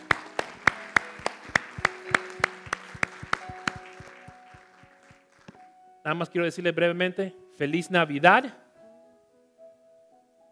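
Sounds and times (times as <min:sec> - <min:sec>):
audience applause: 0:00.0 - 0:05.6
speech: 0:06.1 - 0:08.6.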